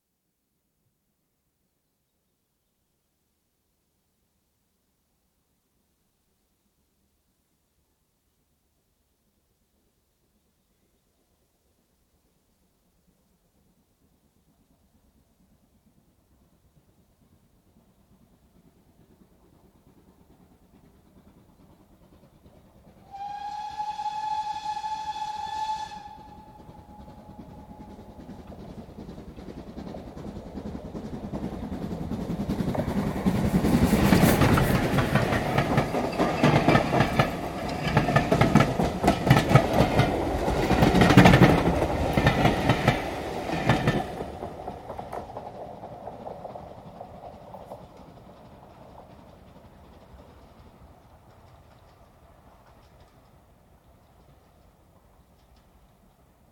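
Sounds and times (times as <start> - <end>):
steam train passing at high speed: 12.5 - 56.5
steam train whistle: 23.0 - 28.2.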